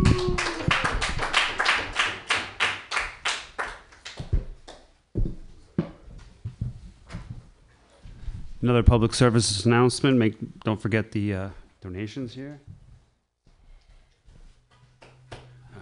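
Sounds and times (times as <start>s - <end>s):
audience applause for comedian: 0.0s - 3.7s
speech: 8.6s - 12.7s.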